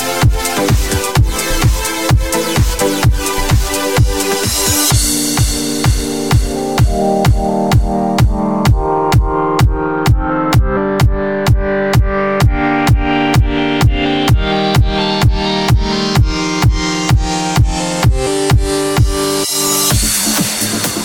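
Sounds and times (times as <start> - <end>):
electro music: 0.0 - 21.0.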